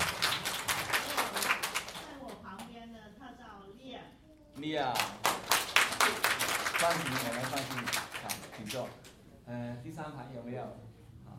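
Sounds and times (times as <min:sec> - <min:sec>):
class clapping hands in welcome: 0:00.0 - 0:02.7, 0:04.9 - 0:09.2
speech: 0:04.6 - 0:05.3, 0:06.8 - 0:08.0, 0:08.6 - 0:11.0.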